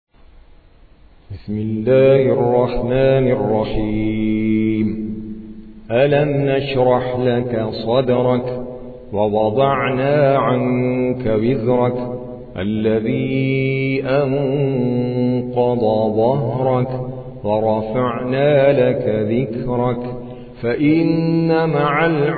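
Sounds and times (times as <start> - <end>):
Quran recitation by an Indian reciter: 1.3 - 22.3.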